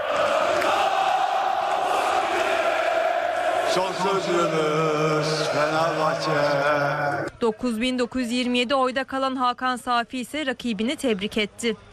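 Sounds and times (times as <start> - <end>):
large crowd chanting and cheering: 0.0 - 7.4
speech: 3.7 - 11.9.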